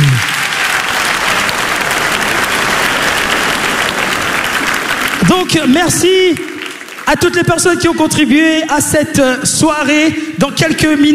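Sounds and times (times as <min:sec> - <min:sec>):
audience applause: 0:00.0 - 0:08.4
speech: 0:05.5 - 0:06.5, 0:07.1 - 0:11.1.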